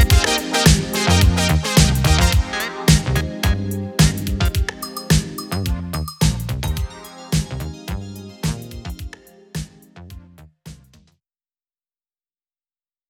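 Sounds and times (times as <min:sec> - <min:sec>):
game menu music: 0:00.1 - 0:09.5.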